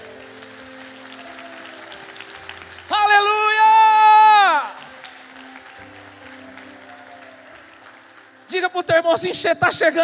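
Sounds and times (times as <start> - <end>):
audience applauding: 0.0 - 9.0
speech: 8.6 - 10.0.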